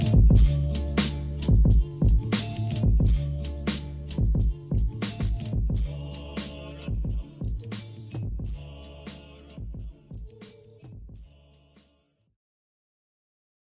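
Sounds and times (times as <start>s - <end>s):
war drums: 0.1s - 0.5s, 1.5s - 3.2s, 4.2s - 5.9s, 6.9s - 8.6s.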